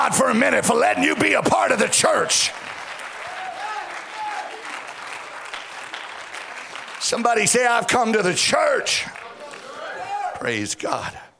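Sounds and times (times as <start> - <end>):
speech: 0.1 - 2.7, 7.0 - 9.2, 10.4 - 11.2
audience clapping hands: 1.5 - 10.1.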